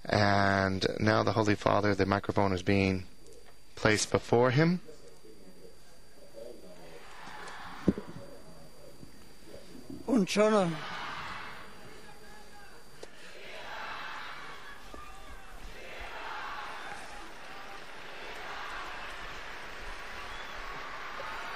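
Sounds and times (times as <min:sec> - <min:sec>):
speech: 0:00.7 - 0:03.1, 0:03.8 - 0:04.9, 0:10.2 - 0:11.0
crowd cheering and yelling: 0:10.5 - 0:21.5.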